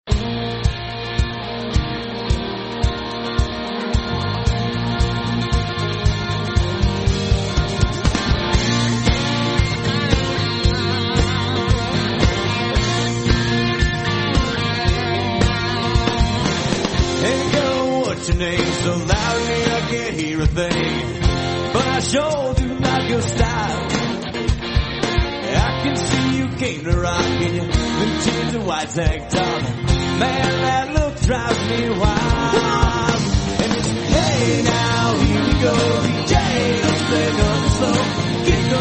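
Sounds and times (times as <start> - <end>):
country band playing: 0.0 - 38.8.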